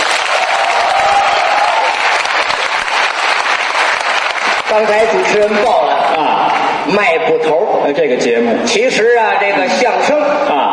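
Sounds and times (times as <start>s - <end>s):
audience applause: 0.0s - 6.7s
speech: 4.7s - 5.8s, 6.8s - 10.7s.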